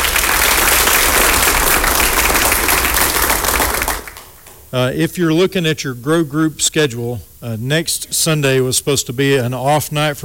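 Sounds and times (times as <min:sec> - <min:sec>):
audience clapping hands: 0:00.0 - 0:04.7
speech: 0:04.7 - 0:10.2.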